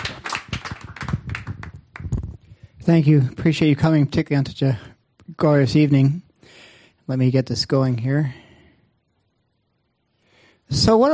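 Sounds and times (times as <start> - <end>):
lecture audience applauding a visiting speaker: 0.0 - 2.1
speech: 2.9 - 6.2, 7.1 - 8.4, 10.7 - 11.1.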